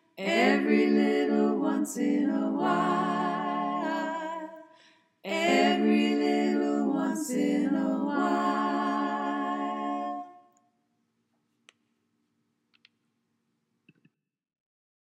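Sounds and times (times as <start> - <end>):
choir singing all parts: 0.0 - 4.7, 5.3 - 10.5.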